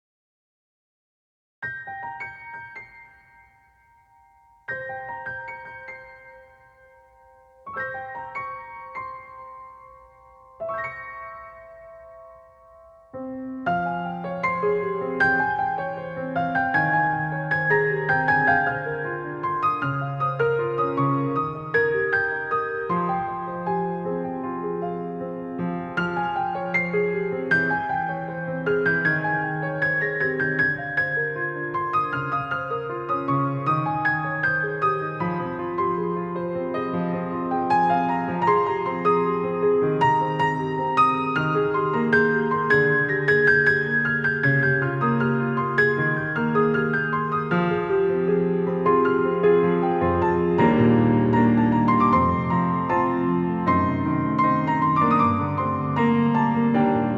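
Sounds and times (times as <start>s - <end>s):
instrumental music: 1.6s - 57.1s.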